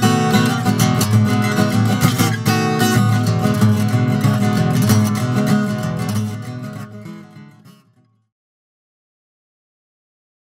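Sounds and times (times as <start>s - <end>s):
contemporary style guitar playing: 0.0s - 8.2s.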